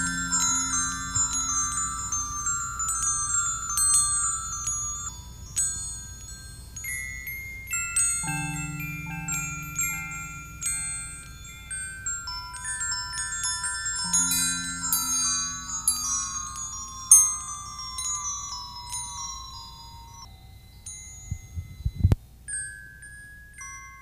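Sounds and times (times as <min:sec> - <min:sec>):
wind chimes: 0:00.0 - 0:24.0.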